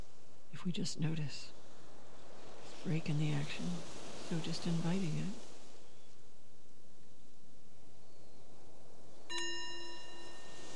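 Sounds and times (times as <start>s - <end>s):
quiet hiss: 0.0s - 10.7s
speech: 0.5s - 1.6s, 2.8s - 5.4s
mindfulness bell ringing: 9.3s - 10.7s.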